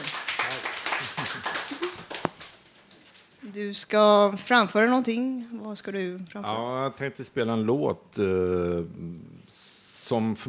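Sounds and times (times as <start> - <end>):
audience applause: 0.0 - 2.8
speech: 3.6 - 9.4, 10.1 - 10.4.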